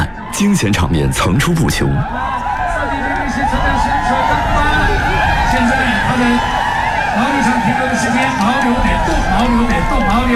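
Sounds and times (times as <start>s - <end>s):
spectators cheering: 0.0s - 10.3s
speech: 0.4s - 2.4s, 5.5s - 6.6s, 7.2s - 10.3s.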